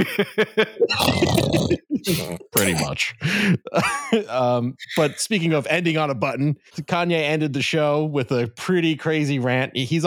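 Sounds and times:
speech: 0.1 - 10.0
person imitating snoring: 0.9 - 2.9, 4.8 - 5.2.

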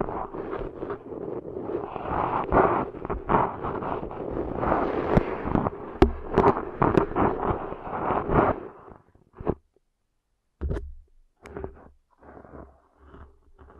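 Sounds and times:
ear cleaning crackling scratching and rustling: 0.0 - 9.7, 10.7 - 13.7
soft rubbing: 0.0 - 9.8, 10.6 - 13.7
sharp pops: 4.9 - 8.6.

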